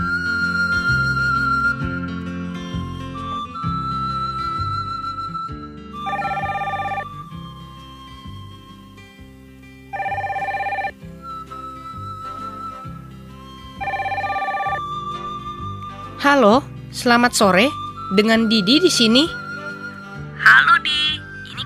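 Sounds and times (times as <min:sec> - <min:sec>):
soft music: 0:00.0 - 0:21.6
telephone ringing with a two-tone ring: 0:06.0 - 0:07.3, 0:09.9 - 0:11.0, 0:13.8 - 0:14.9
speech: 0:16.3 - 0:19.4.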